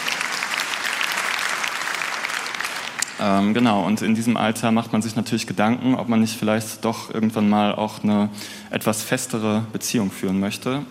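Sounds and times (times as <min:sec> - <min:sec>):
audience applause: 0:00.0 - 0:03.3
speech: 0:03.2 - 0:10.8.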